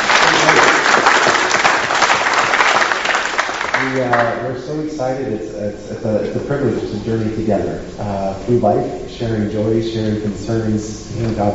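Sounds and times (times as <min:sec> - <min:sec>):
crowd applauding: 0:00.0 - 0:04.6
speech: 0:03.9 - 0:11.5.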